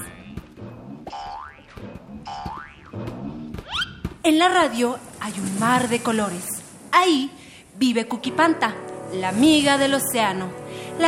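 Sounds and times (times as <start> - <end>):
bouncing ball cartoon boing effects: 1.1 - 1.7, 2.3 - 3.0
speech: 4.2 - 11.0
busy music: 7.8 - 11.0.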